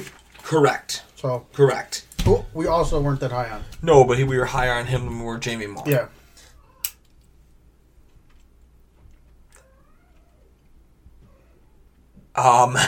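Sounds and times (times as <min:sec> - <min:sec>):
speech: 0:00.0 - 0:06.2, 0:12.4 - 0:12.8
cat yowling: 0:09.6 - 0:10.6.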